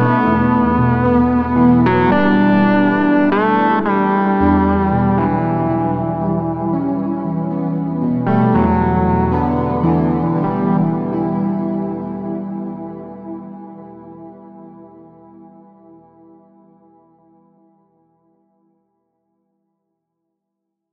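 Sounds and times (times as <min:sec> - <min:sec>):
lead guitar with chorus effect: 0:00.0 - 0:16.3.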